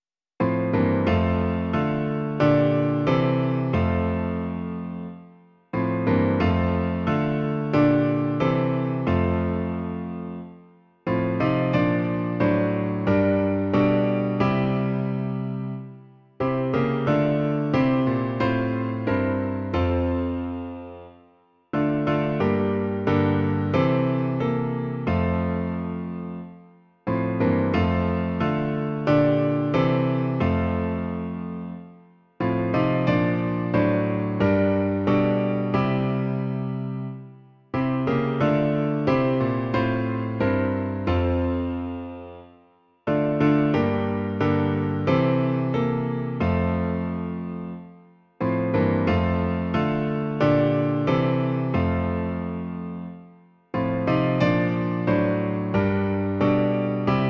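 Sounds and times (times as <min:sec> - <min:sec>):
piano: 0:00.0 - 0:57.2.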